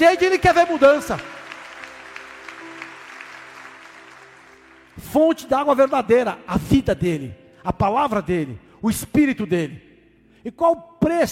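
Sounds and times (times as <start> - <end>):
speech: 0.0 - 1.4, 5.1 - 11.2
audience applause: 0.0 - 5.0.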